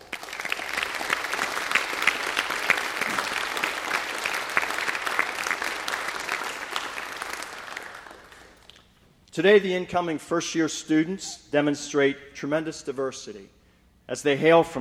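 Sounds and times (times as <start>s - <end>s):
audience applause: 0.0s - 8.8s
speech: 9.4s - 14.7s.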